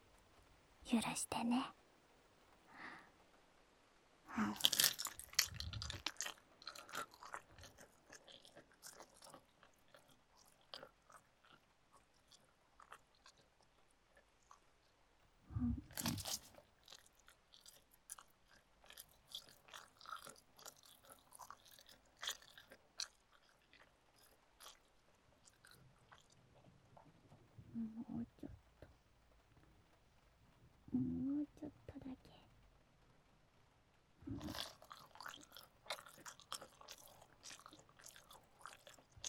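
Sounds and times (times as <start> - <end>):
speech: 0.9 - 1.8, 4.4 - 4.8
ASMR eating and chewing sounds close to the microphone: 4.3 - 31.1, 34.2 - 39.2
ASMR ear nibbling sounds close to the microphone: 4.4 - 13.0, 15.5 - 24.9, 34.2 - 39.2.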